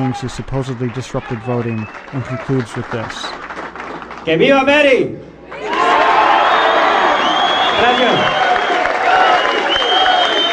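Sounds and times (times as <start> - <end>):
crowd cheering and yelling: 0.0 - 2.5, 5.5 - 10.5
speech: 0.0 - 3.4, 4.2 - 5.6, 7.8 - 8.4.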